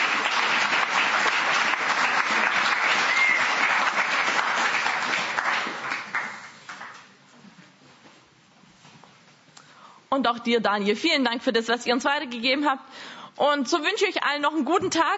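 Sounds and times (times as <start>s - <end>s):
audience applause: 0.0s - 7.0s
speech: 10.2s - 15.1s.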